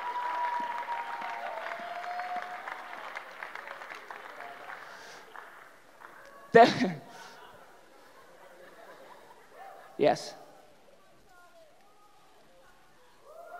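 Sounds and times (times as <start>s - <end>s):
audience applause: 0.0s - 6.3s
speech: 6.5s - 7.2s, 10.0s - 10.4s
laughter: 7.2s - 10.0s.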